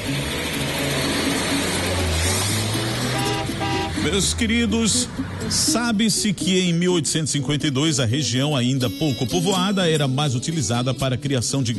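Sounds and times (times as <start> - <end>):
car engine accelerating at the start of a journey: 0.0 - 6.6
speech: 4.1 - 11.7.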